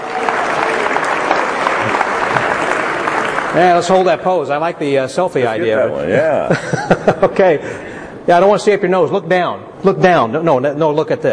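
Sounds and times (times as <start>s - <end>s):
audience applause: 0.0s - 4.2s
speech: 3.6s - 11.3s
laughter: 6.4s - 7.8s.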